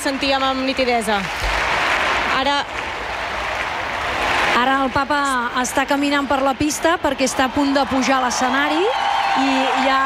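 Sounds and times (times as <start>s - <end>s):
speech: 0.0s - 1.6s, 2.3s - 2.8s, 4.6s - 10.0s
crowd applause at a large event with the Pope and young people: 0.0s - 4.9s, 7.2s - 10.0s.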